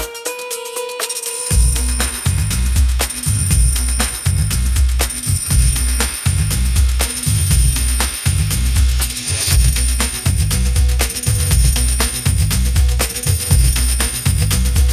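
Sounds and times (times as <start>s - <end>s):
pop groove: 0.0s - 14.9s.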